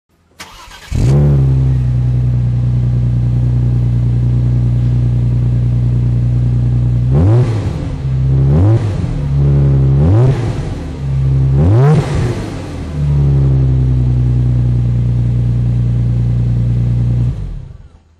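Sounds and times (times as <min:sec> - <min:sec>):
Audi S4 with Neuspeed exhaust: 0:00.5 - 0:18.0.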